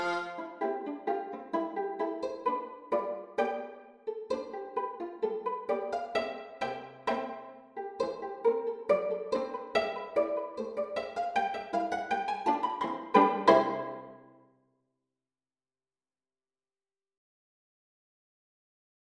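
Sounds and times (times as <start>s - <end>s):
viola quartet playing pizzicato: 0.0s - 14.3s.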